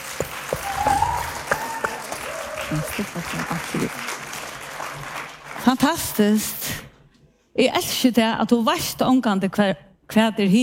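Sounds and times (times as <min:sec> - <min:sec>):
crowd clapping: 0:00.0 - 0:06.2
speech: 0:02.7 - 0:04.2, 0:05.6 - 0:06.9, 0:07.6 - 0:10.6.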